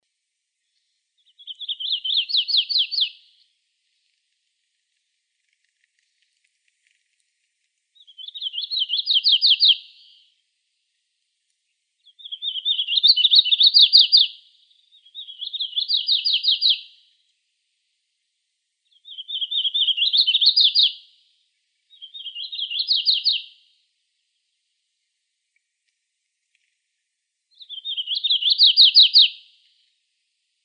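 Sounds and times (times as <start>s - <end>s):
warbler singing fast high slurred notes in Arizona: 1.2s - 3.4s, 8.0s - 10.3s, 12.0s - 17.0s, 18.9s - 21.0s, 21.9s - 23.6s, 27.5s - 29.5s.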